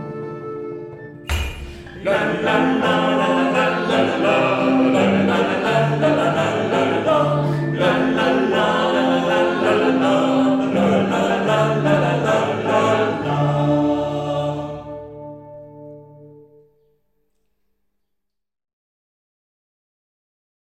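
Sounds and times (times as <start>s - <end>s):
small choir singing a folk song in Upper Saxon dialect: 1.3s - 16.1s.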